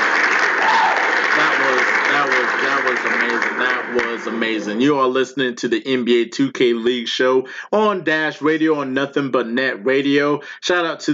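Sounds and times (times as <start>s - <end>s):
round of applause for two NBA 2K League esports teams: 0.0s - 5.0s
speech: 3.9s - 11.1s.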